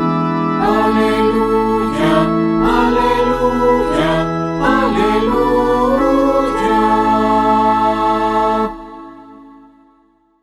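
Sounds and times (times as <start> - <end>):
alleluia singing: 0.1 - 10.1.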